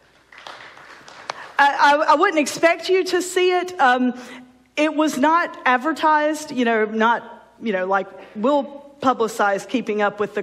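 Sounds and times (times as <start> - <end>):
scattered audience handclaps: 0.3 - 1.5
speech: 1.6 - 10.4.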